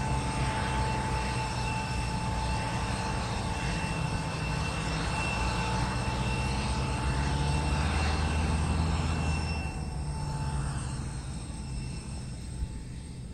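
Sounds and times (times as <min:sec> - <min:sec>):
1989 Boeing 747-400 jumbo jet idling while towed: 0:00.0 - 0:13.3.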